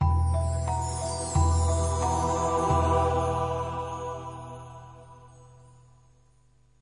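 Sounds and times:
jingle: 0.0s - 6.2s.

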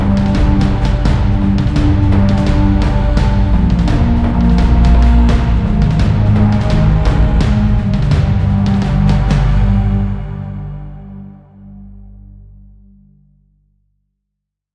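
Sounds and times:
battle drums pad: 0.0s - 10.3s.

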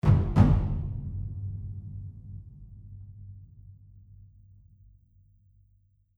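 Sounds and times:
huge drum slams: 0.0s - 4.2s.

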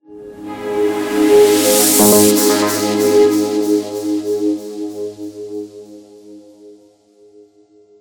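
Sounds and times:
transition end sound: 1.2s - 4.9s.

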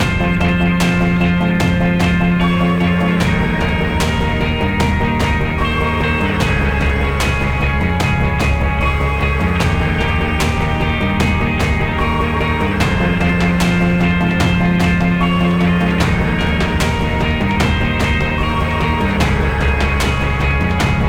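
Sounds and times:
boss battle game music: 0.0s - 21.0s.

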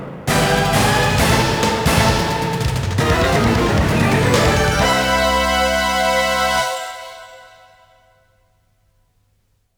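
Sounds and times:
stage clear jingle: 0.3s - 8.1s.

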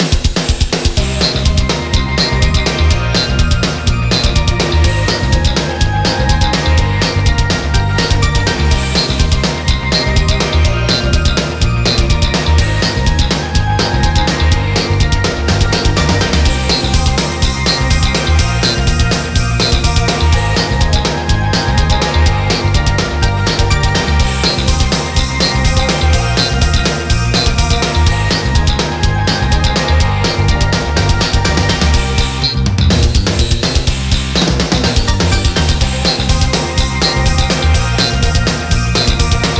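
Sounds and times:
melancholic music loop: 1.0s - 39.5s.

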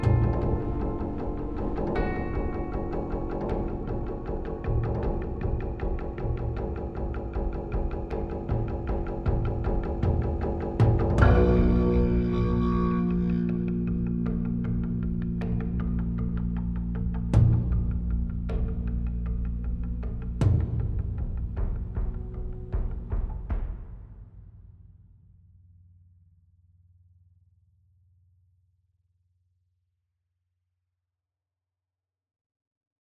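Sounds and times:
rage combat music: 0.0s - 23.8s.

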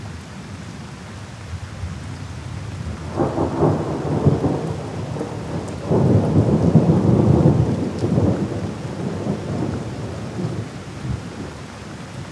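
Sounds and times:
heavy rain in a storm: 0.0s - 12.2s
thunder rumble in a storm: 3.0s - 11.3s.

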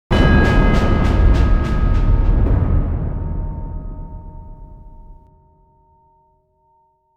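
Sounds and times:
short intro: 0.1s - 5.3s.

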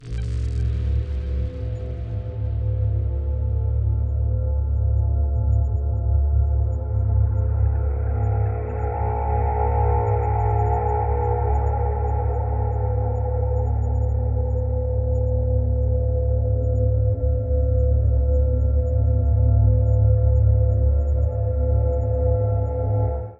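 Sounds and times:
ambience: 0.0s - 23.3s.

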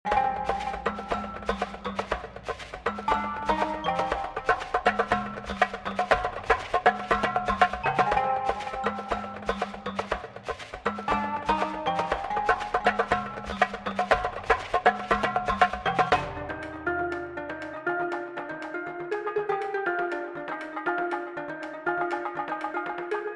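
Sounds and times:
puzzle game music: 0.1s - 23.3s.

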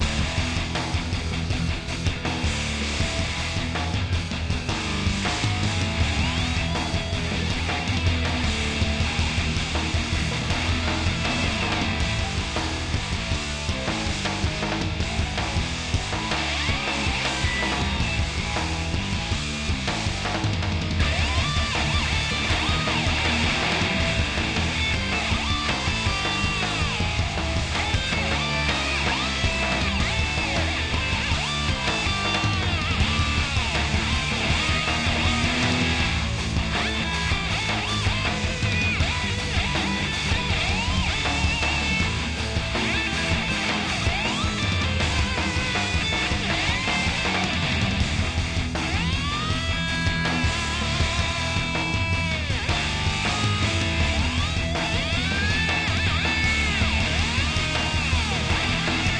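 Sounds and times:
battle music loop: 0.0s - 59.1s.

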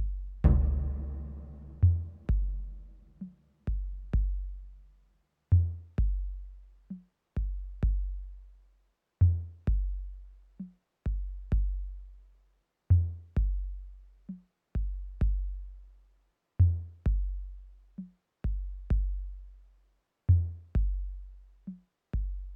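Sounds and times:
drum: 0.0s - 4.7s, 5.9s - 8.3s, 9.3s - 11.9s, 13.3s - 13.8s, 14.8s - 15.6s, 17.1s - 19.4s, 20.4s - 22.5s.

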